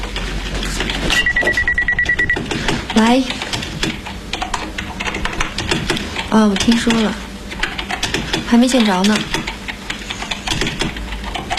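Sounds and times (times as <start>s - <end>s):
noise: 0.0s - 11.5s
telephone bell ringing: 1.2s - 2.4s
speech: 3.0s - 3.4s, 6.3s - 7.3s, 8.5s - 9.5s.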